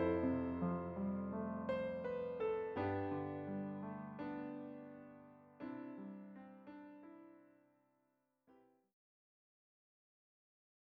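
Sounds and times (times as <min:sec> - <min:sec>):
piano: 0:00.0 - 0:07.9.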